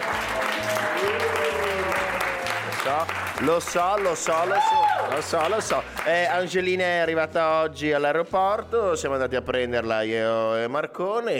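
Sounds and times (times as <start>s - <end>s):
crowd applause: 0.0s - 6.4s
speech: 2.8s - 11.3s.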